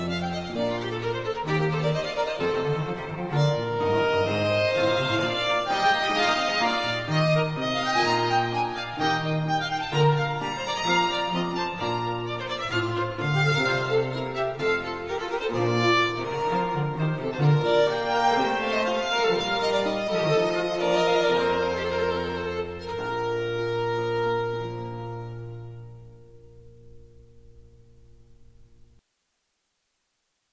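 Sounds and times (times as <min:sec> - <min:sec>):
trio sonata allegro in C major: 0:00.0 - 0:29.0.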